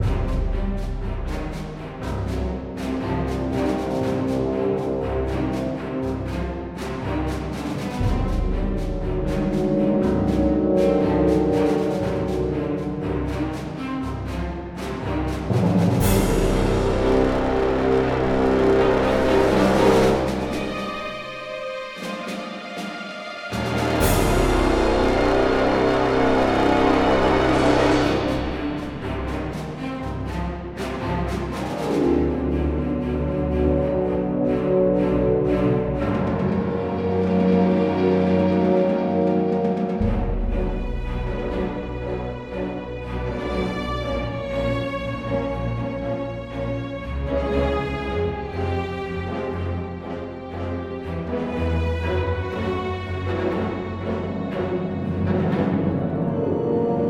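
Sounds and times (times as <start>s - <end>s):
music: 0.0s - 57.0s.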